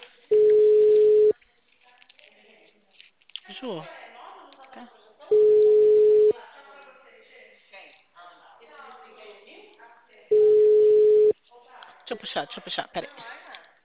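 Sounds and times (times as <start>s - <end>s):
telephone busy signal: 0.3s - 1.3s, 5.3s - 6.3s, 10.3s - 11.3s
speech: 3.6s - 4.0s, 4.8s - 5.4s.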